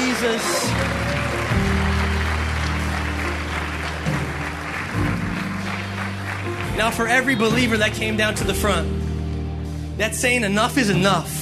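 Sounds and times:
audience applause: 0.0 - 7.9
sustained keyboard or organ chords: 0.0 - 11.3
speech: 0.2 - 1.7, 6.8 - 9.0, 10.0 - 11.3.

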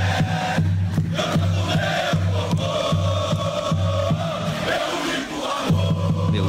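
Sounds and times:
football fans singing at an airport: 0.0 - 6.4.

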